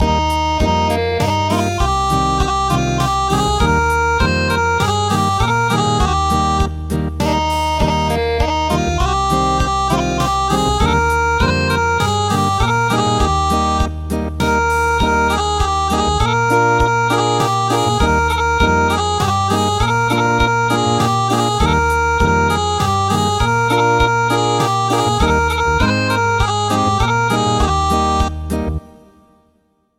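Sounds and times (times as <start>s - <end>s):
acoustic music: 0.0s - 29.7s.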